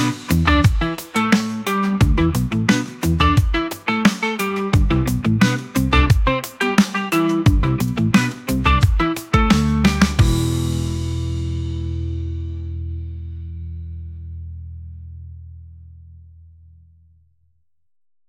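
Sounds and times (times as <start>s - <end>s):
dub music: 0.0s - 12.0s.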